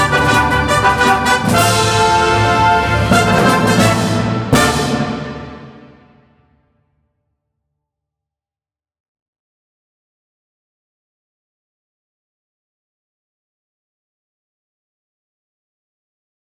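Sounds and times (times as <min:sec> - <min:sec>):
trumpet: 0:00.0 - 0:06.3.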